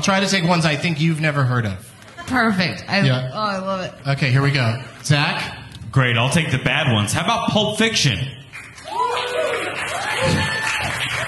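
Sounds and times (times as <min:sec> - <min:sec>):
speech: 0:00.0 - 0:08.4
audience clapping: 0:08.5 - 0:11.2.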